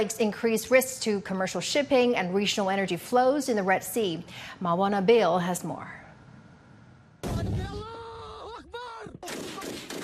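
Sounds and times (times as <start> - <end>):
speech: 0.0 - 6.0
artillery fire: 9.2 - 10.0.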